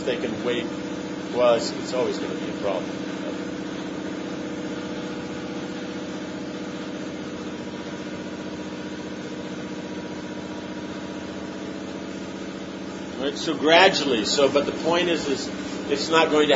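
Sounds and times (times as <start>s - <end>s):
speech: 0.0s - 3.2s, 13.3s - 16.5s
pump running: 0.0s - 16.5s.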